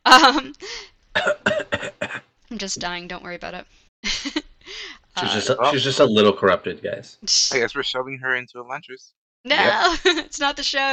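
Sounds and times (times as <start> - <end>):
speech: 0.1 - 1.5, 2.6 - 4.4, 5.2 - 10.9
person coughing: 1.2 - 2.3.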